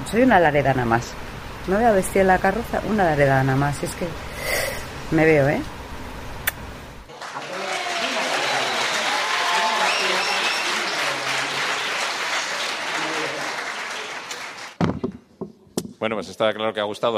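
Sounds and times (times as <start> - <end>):
speech: 0.1 - 5.8, 16.0 - 17.1
audience ovation: 7.1 - 14.8.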